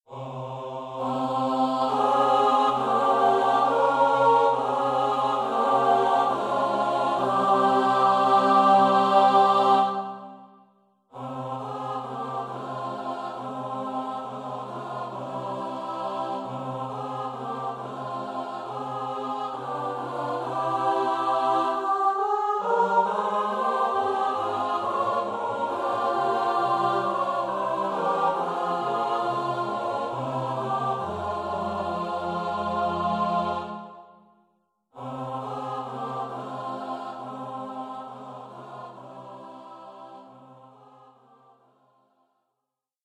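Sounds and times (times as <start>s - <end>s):
SATB four-part choir singing: 0.0s - 34.3s, 35.0s - 41.8s.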